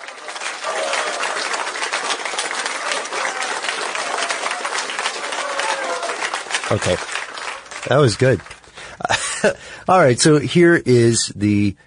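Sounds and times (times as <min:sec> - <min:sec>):
recorded crowd applause soundtrack: 0:00.0 - 0:09.4
speech: 0:06.7 - 0:07.2, 0:07.8 - 0:11.8.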